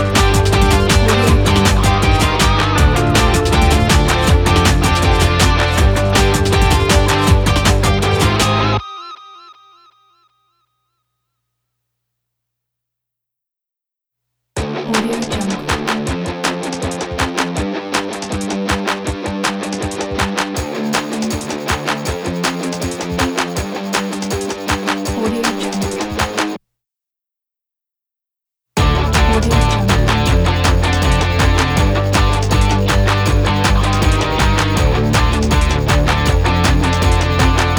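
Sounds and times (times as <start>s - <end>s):
rock breakbeats: 0.0s - 8.8s, 14.6s - 26.6s, 28.8s - 37.7s.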